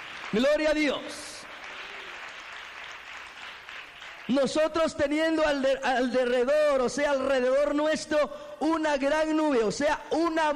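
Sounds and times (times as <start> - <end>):
church congregation applauding during a Spanish-language worship service: 0.0 - 5.4
speech: 0.3 - 1.4, 4.3 - 10.5.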